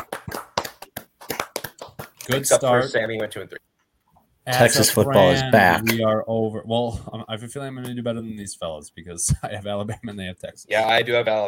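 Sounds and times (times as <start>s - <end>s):
hand clapping: 0.0s - 2.7s
speech: 2.3s - 3.6s, 4.5s - 11.4s.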